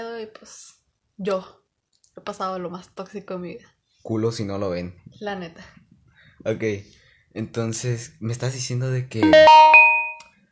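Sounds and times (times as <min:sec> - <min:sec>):
speech: 0:00.0 - 0:01.6, 0:02.2 - 0:05.8, 0:06.4 - 0:09.8
phone notification sound: 0:09.2 - 0:10.2.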